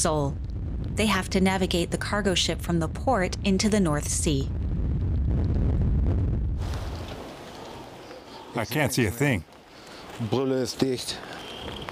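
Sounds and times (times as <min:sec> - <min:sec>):
speech: 0:00.0 - 0:00.4, 0:01.0 - 0:04.6, 0:08.6 - 0:09.5, 0:10.2 - 0:11.8
storm-force wind at the port of Emden: 0:00.0 - 0:08.6.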